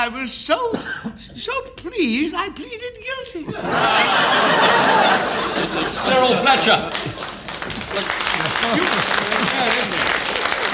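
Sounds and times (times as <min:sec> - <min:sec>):
speech: 0:00.0 - 0:07.2, 0:08.0 - 0:10.0
laughter: 0:03.5 - 0:10.7
round of applause: 0:06.0 - 0:10.7.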